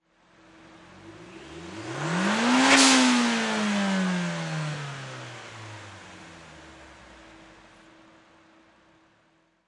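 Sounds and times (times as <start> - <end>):
Nissan Silvia engine single rev: 0.8 - 7.6.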